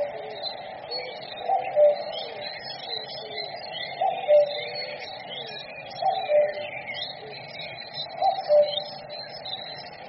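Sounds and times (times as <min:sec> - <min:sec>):
common cuckoo calling: 0:00.0 - 0:07.4, 0:08.0 - 0:09.1.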